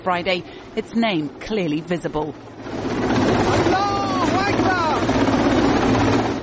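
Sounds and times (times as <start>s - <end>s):
speech: 0.0s - 3.0s
helicopter rotors: 0.0s - 6.4s
speedboat engines: 0.0s - 6.4s
person calling out: 3.5s - 5.0s.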